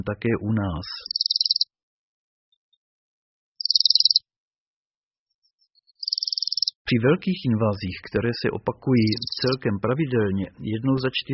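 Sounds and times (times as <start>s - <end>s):
speech: 0.0s - 1.2s, 6.9s - 11.3s
Bohemian waxwing calls of high thin buzzy trills: 1.0s - 1.7s, 3.6s - 4.3s, 5.4s - 6.8s, 9.0s - 9.6s.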